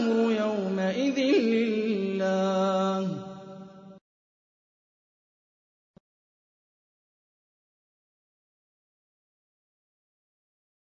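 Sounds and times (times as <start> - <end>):
Quran recitation: 0.0 - 4.0.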